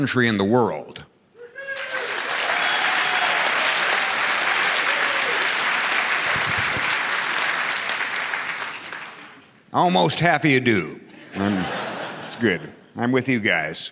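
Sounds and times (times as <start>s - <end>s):
speech: 0.0s - 1.1s, 9.7s - 13.9s
audience round of applause: 1.6s - 9.5s
laughter: 11.1s - 12.8s.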